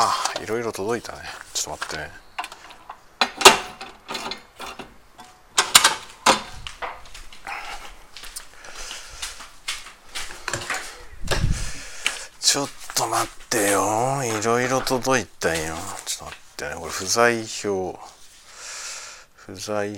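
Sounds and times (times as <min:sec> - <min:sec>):
speech: 0:00.0 - 0:02.2, 0:12.5 - 0:18.2, 0:19.5 - 0:19.9
shuffling: 0:00.1 - 0:03.0, 0:06.0 - 0:18.6
home mailbox opening with metallic clicks and rattling knocks: 0:02.4 - 0:06.5.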